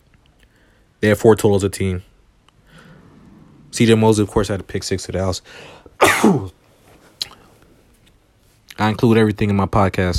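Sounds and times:
speech: 1.0 - 2.1, 3.8 - 6.6, 8.8 - 10.1
sneeze: 6.0 - 6.6.

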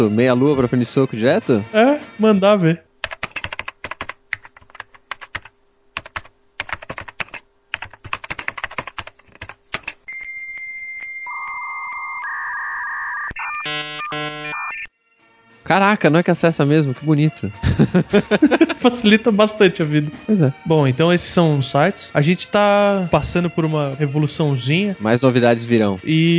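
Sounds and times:
speech: 0.0 - 2.9, 15.7 - 26.3
typing a web address on keyboard: 3.0 - 11.2
steady high electronic tones: 10.1 - 14.9
warbling beeps: 10.1 - 14.9
laughter: 17.6 - 19.1.

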